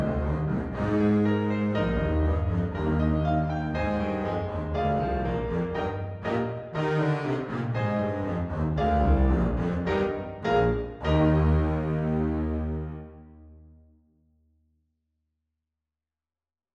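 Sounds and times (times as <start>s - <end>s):
double bass: 0.0s - 13.2s.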